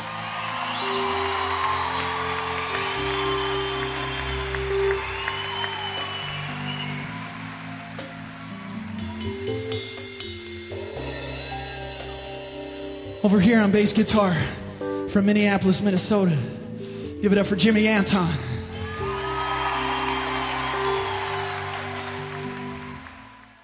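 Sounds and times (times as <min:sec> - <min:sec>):
crowd clapping for musicians: 0:00.0 - 0:10.3, 0:18.8 - 0:23.6
person whooping: 0:00.2 - 0:07.9, 0:18.8 - 0:23.5
speech: 0:13.2 - 0:16.6, 0:17.2 - 0:18.5.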